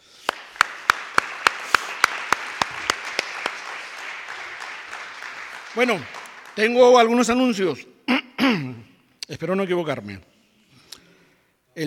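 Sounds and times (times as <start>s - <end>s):
applause: 0.0s - 7.6s
speech: 5.8s - 10.3s.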